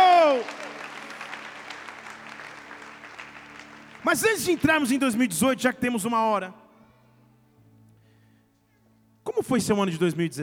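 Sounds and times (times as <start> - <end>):
audience applauding: 0.0 - 5.3
speech: 4.0 - 6.6, 9.5 - 10.4.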